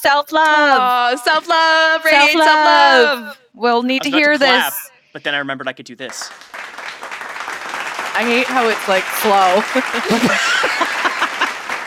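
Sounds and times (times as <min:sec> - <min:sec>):
speech: 0:00.0 - 0:06.6, 0:08.2 - 0:10.9
murmuring voices: 0:00.8 - 0:05.5
laughter: 0:04.0 - 0:04.8, 0:09.4 - 0:11.8
hesitant audience applause: 0:06.0 - 0:11.8.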